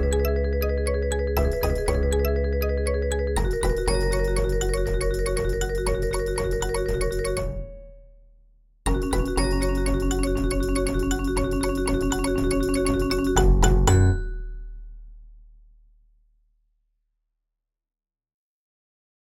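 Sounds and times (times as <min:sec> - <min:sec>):
percussion ensemble: 0:00.0 - 0:02.4, 0:03.1 - 0:07.7, 0:08.9 - 0:14.6.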